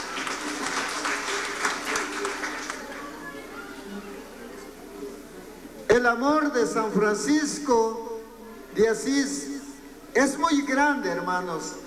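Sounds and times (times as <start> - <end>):
audience applause: 0.0 - 3.6
speech: 6.0 - 8.1, 8.8 - 9.5, 10.2 - 11.8.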